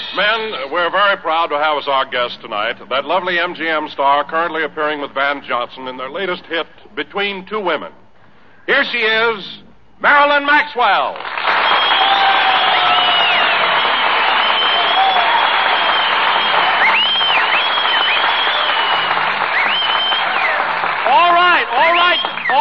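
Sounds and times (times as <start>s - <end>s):
speech: 0.1s - 8.0s, 8.7s - 11.4s
audience applause and cheering: 11.2s - 22.5s.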